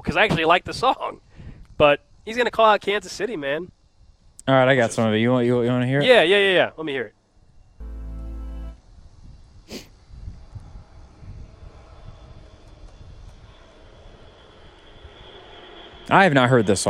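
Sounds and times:
speech: 0.0 - 1.2, 1.8 - 3.8, 4.5 - 7.2, 16.1 - 16.8
C-130 military transport plane flying overhead: 9.9 - 16.8.

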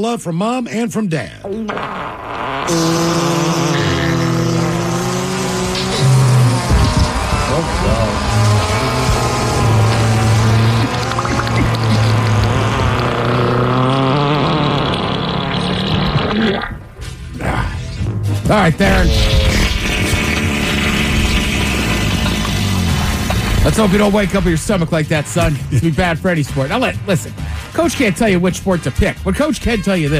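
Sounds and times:
speech: 0.0 - 3.8, 7.5 - 8.4, 18.5 - 19.4, 23.6 - 30.1
fart sound effects medley: 1.4 - 17.6, 18.7 - 24.3.

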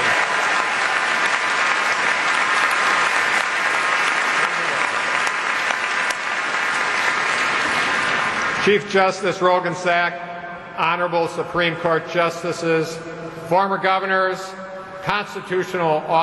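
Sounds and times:
audience applause: 0.0 - 8.8
speech: 8.7 - 16.2.

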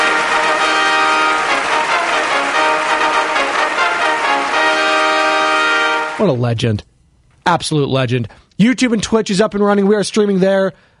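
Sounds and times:
trumpet fanfare sound effect: 0.0 - 6.4
speech: 6.2 - 10.9.

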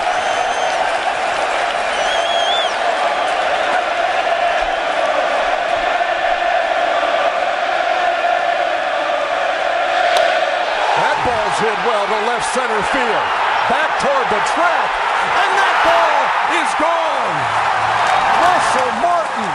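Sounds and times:
sharp whistles: 0.0 - 0.8, 1.9 - 2.8
packed stadium crowd jeering a pitcher: 0.0 - 19.5
speech: 12.4 - 17.7.

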